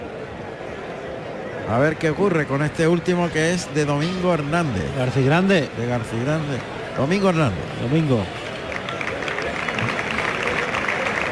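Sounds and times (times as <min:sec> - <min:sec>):
low murmur of voices: 0:00.0 - 0:11.3
speech: 0:01.7 - 0:08.4
large bullring crowd applauding: 0:03.8 - 0:11.3.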